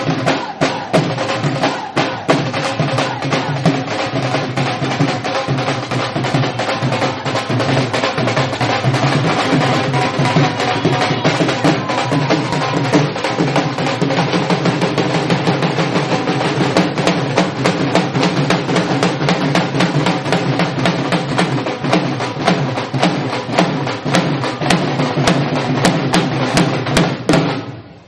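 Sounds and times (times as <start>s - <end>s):
Punjabi dhol drumming for bhangra: 0.0s - 28.0s.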